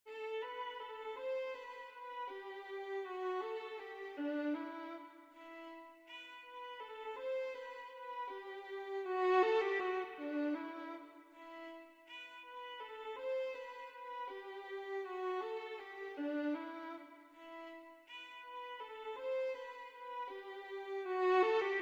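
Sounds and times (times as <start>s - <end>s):
violin: 0.0s - 21.8s.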